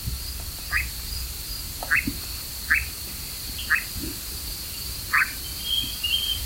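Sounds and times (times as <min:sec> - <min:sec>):
short rising croak-like calls: 0:00.3 - 0:03.0, 0:03.6 - 0:04.2, 0:05.0 - 0:06.4
European nightjar churring drone: 0:01.8 - 0:02.9, 0:03.6 - 0:03.9.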